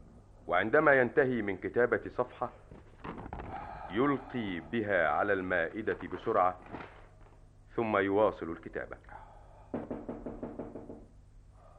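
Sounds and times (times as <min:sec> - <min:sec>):
speech: 0:00.5 - 0:02.7, 0:03.9 - 0:06.8, 0:07.8 - 0:09.1
knocking on a door: 0:09.7 - 0:11.2.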